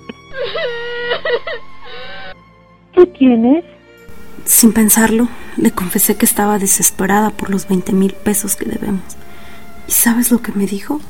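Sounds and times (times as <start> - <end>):
woman lying on the floor crying: 0.2 - 2.4
speech: 3.2 - 3.8, 4.4 - 9.3, 9.9 - 11.0.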